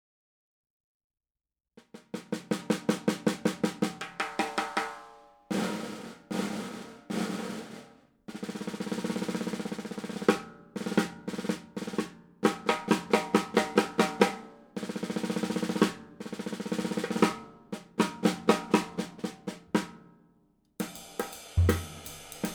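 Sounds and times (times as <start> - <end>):
Gretsch 5.5x14 Anniversary snare drum: 1.8 - 20.0, 20.8 - 22.5.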